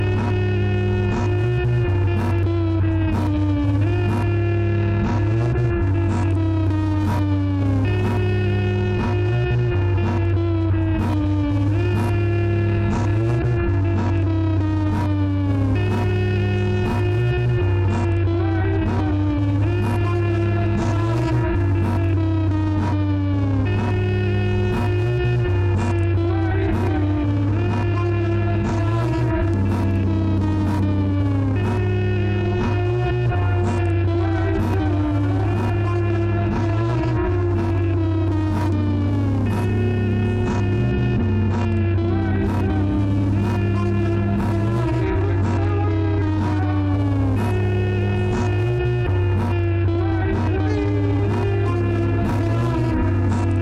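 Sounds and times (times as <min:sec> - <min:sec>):
micro bass: 0:00.0 - 0:53.6.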